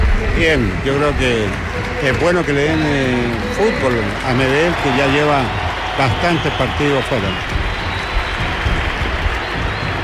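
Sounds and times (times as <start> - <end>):
stadium crowd applauding at a football match: 0.0 - 10.0
speech: 0.4 - 7.6.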